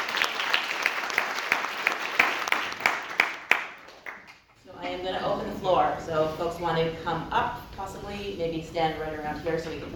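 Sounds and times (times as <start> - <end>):
audience applause: 0.0 - 4.3
speech: 5.7 - 9.9.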